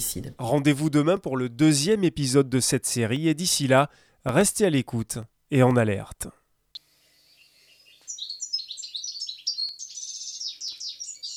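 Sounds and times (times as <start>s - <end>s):
speech: 0.0s - 6.4s
European goldfinch singing: 7.2s - 11.3s.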